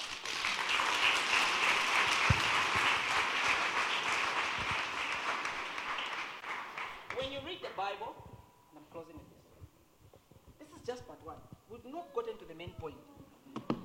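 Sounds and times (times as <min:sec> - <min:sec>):
audience clapping hands: 0:00.0 - 0:07.7
speech: 0:11.3 - 0:13.1.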